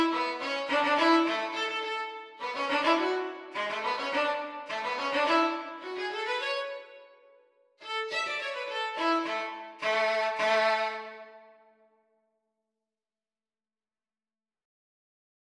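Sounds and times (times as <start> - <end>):
violin duet: 0.0 - 7.1, 7.8 - 11.6.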